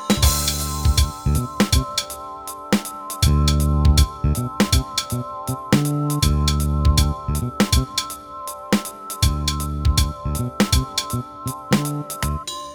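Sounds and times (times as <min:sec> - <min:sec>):
MIDI ditty: 0:00.1 - 0:02.1, 0:03.2 - 0:08.1, 0:09.2 - 0:12.5.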